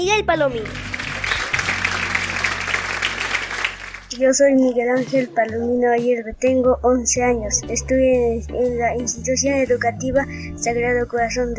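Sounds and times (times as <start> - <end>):
speech: 0.0 - 0.9, 4.2 - 11.5
applause: 0.6 - 4.2.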